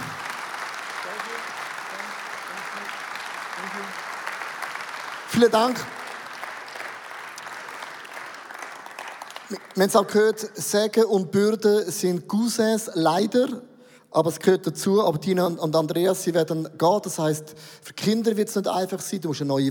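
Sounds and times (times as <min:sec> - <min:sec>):
audience applause: 0:00.0 - 0:09.9
speech: 0:03.6 - 0:04.1, 0:05.3 - 0:06.0, 0:09.5 - 0:19.6.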